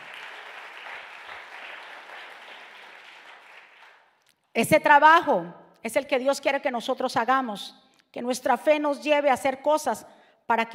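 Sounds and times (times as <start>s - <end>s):
audience applause: 0.0s - 4.0s
speech: 4.6s - 10.7s.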